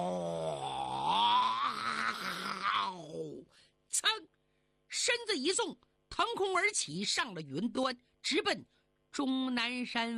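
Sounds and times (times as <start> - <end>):
narrator imitating a tiger's roar: 0.0 - 3.5
speech: 5.1 - 10.1.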